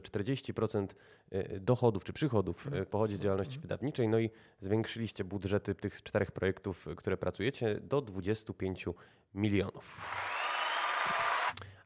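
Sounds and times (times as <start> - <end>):
speech: 0.0 - 10.4
dense applause of many hands clapping together: 9.9 - 11.6.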